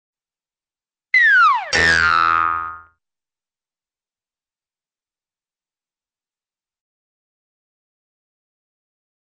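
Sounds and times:
falling flat twang: 1.2 - 2.9.

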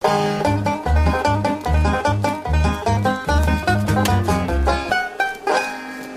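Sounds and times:
banjo: 0.0 - 6.1.

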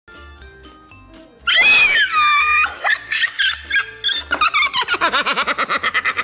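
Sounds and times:
child laughing: 2.1 - 6.2.

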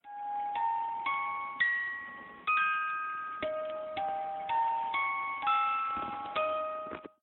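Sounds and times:
jewelry box: 0.0 - 7.2.

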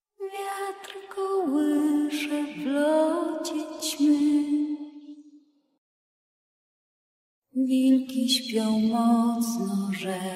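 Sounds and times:
person singing: 0.2 - 4.8, 7.6 - 10.3.

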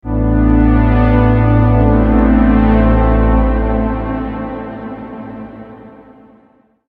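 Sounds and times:
trance music: 0.0 - 6.5.

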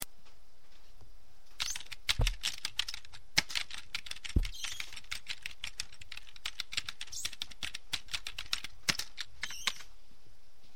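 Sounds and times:
typing: 1.6 - 9.8.

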